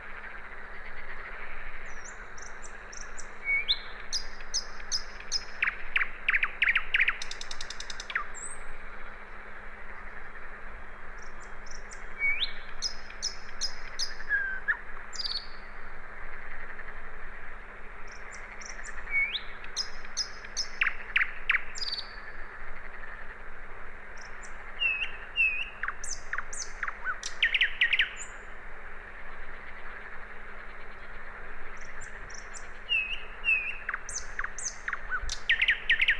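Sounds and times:
common nightingale singing: 0:00.8 - 0:08.7, 0:11.2 - 0:15.8, 0:18.1 - 0:22.3, 0:24.2 - 0:28.5, 0:31.8 - 0:36.1.

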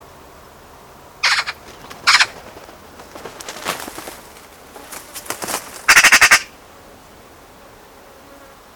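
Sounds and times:
Eurasian magpie Pica pica giving rattling chatters: 0:01.2 - 0:06.5.

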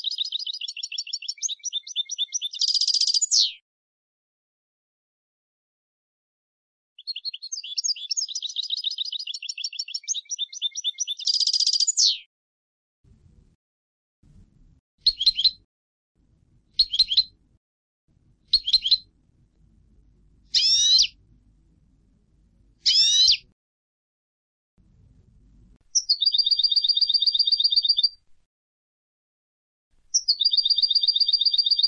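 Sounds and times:
European goldfinch Carduelis carduelis rapid bright chirps: 0:00.0 - 0:03.6, 0:07.0 - 0:12.3, 0:15.0 - 0:15.6, 0:16.8 - 0:17.4, 0:18.5 - 0:19.1, 0:20.5 - 0:21.2, 0:22.8 - 0:23.4, 0:25.9 - 0:28.2, 0:30.1 - 0:31.8.

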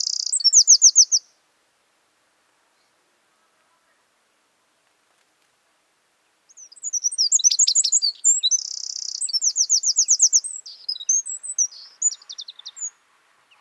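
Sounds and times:
Eurasian wren singing: 0:00.0 - 0:01.3, 0:06.5 - 0:13.6.

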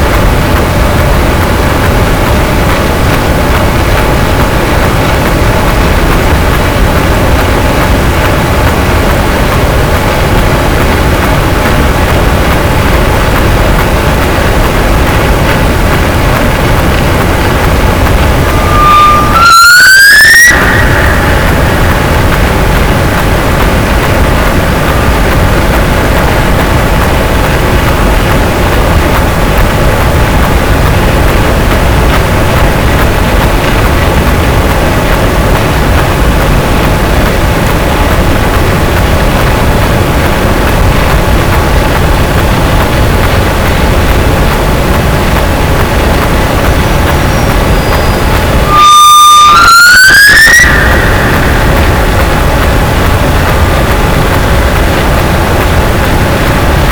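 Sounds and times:
boat: 0:00.0 - 0:56.9
sperm whale: 0:16.6 - 0:26.6, 0:46.7 - 0:55.3.

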